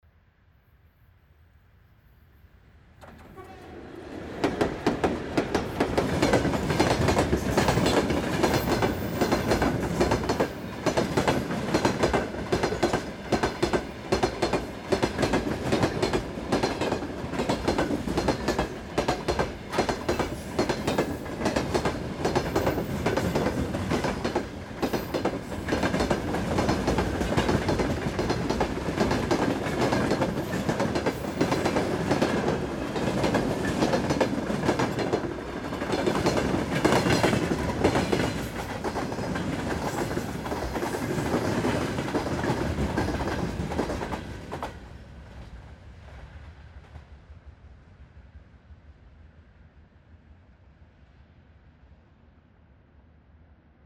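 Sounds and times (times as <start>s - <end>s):
train: 0.0s - 53.8s.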